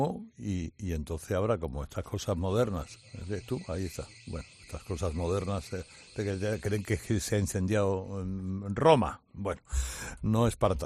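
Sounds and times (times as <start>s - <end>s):
speech: 0.0s - 10.8s
alarm beeping in the studio: 2.4s - 8.0s.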